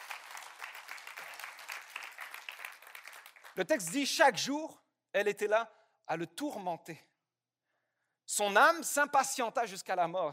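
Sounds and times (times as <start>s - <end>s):
audience applause: 0.0s - 4.0s
speech: 3.6s - 7.1s, 8.3s - 10.3s.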